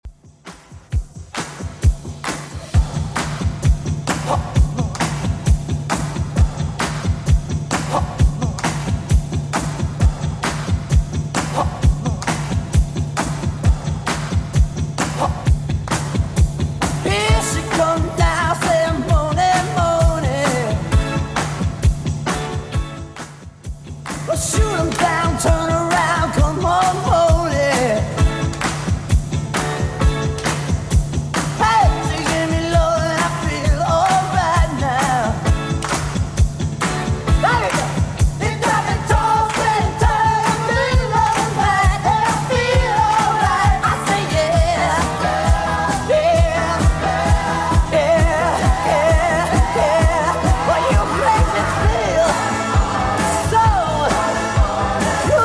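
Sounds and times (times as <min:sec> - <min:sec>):
70s-style drum beat at 132bpm: 0:00.0 - 0:55.4.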